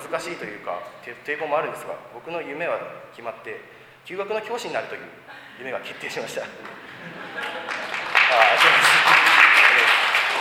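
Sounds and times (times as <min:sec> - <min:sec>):
speech: 0:00.1 - 0:08.9
laughter: 0:05.3 - 0:10.4
audience applause: 0:06.6 - 0:10.4.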